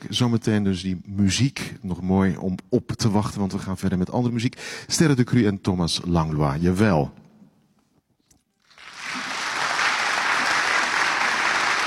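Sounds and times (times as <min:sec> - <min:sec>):
speech: 0:00.1 - 0:07.2
audience applause: 0:08.7 - 0:11.8.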